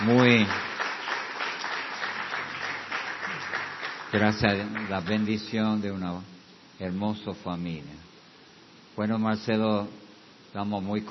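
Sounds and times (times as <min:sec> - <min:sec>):
audience applause: 0:00.0 - 0:05.3
speech: 0:00.1 - 0:00.7, 0:04.1 - 0:08.1, 0:09.0 - 0:11.0.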